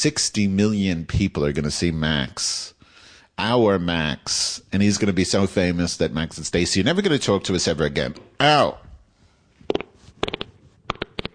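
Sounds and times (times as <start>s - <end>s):
speech: 0.0s - 2.8s, 3.4s - 8.8s
wet fart: 9.7s - 11.3s.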